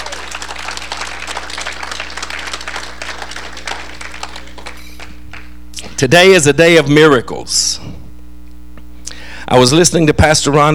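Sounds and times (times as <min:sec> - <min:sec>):
audience applause: 0:00.0 - 0:05.6
low hum: 0:00.0 - 0:10.7
speech: 0:06.0 - 0:08.0, 0:09.5 - 0:10.7.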